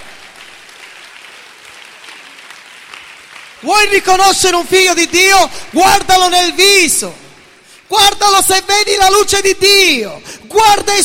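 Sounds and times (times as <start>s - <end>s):
crowd audience applauding: 0.0s - 5.0s
speech: 3.6s - 7.2s, 7.9s - 11.0s.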